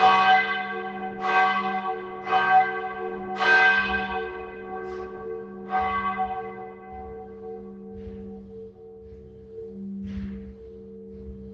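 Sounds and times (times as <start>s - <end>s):
church bells ringing in Modena: 0.0s - 9.0s.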